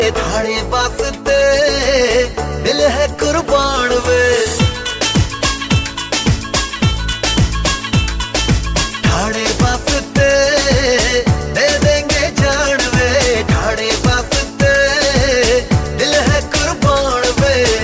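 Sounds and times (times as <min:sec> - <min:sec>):
desi beats: 0:00.0 - 0:17.8.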